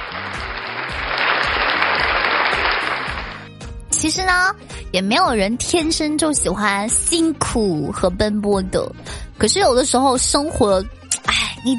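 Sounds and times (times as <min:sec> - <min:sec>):
applause: 0:00.0 - 0:03.6
speech: 0:04.0 - 0:11.7.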